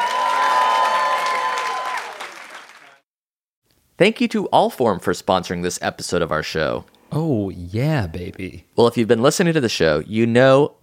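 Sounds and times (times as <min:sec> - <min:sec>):
audience applause: 0:00.0 - 0:03.0
speech: 0:04.0 - 0:10.8.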